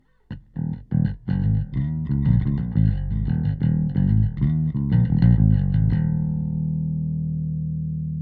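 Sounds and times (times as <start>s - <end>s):
bass: 0.3s - 8.2s.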